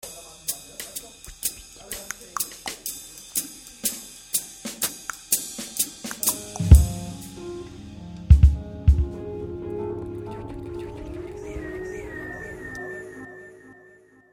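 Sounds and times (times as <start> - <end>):
short jazz piece: 6.2 - 13.4.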